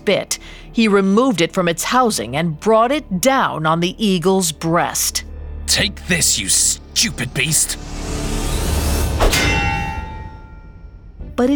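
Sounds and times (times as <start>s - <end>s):
speech: 0.0s - 8.6s, 11.4s - 11.5s
low rumble: 7.8s - 11.5s
loud metal clang: 9.2s - 10.9s.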